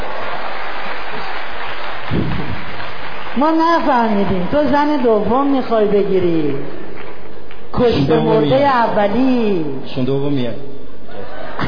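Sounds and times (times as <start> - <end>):
audience applauding a guest's wife: 0.0 - 9.2
speech: 3.4 - 6.8, 7.7 - 10.8
laughter: 11.0 - 11.6.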